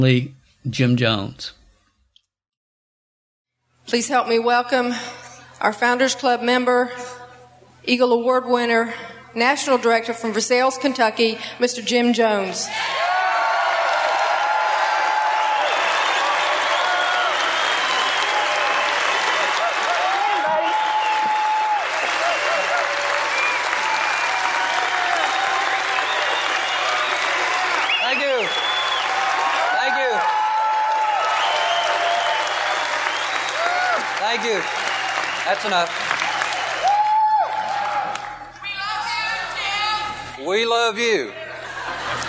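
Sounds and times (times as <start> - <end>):
speech: 0.0 - 1.6, 3.9 - 7.2, 7.9 - 13.1, 35.7 - 36.0
whoops and cheers: 12.7 - 35.4, 36.1 - 38.4
large crowd applauding: 12.7 - 40.2, 41.6 - 42.2
laughter: 41.4 - 42.2.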